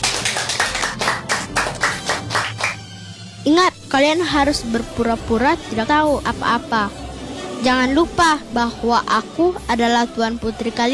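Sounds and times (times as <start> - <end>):
ladies-in-waiting clapping in praise: 0.0 - 3.0
speech: 3.4 - 7.0, 7.6 - 10.9.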